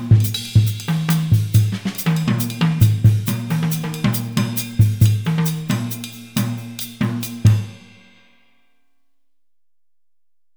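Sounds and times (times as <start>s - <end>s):
drumset playing West African Gahu rhythms: 0.0s - 8.0s.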